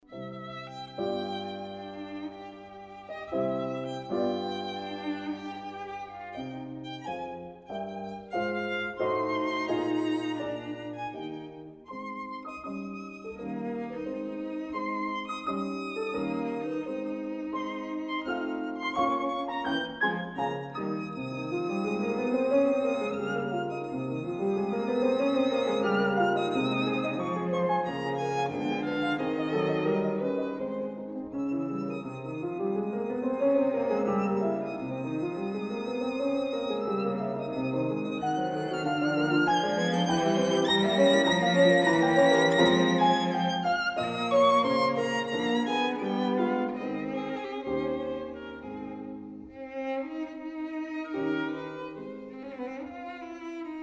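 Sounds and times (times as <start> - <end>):
piano trio: 0.0 - 53.5.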